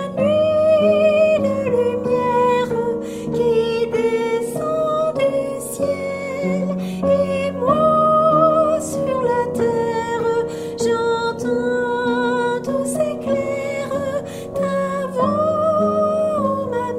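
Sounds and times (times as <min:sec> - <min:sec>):
soprano singing: 0:00.0 - 0:16.9.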